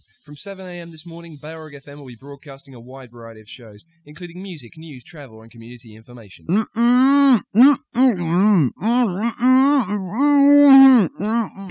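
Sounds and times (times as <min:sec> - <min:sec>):
speech: 0:00.0 - 0:11.7
gagged radio breakfast presenter groaning: 0:06.5 - 0:11.7.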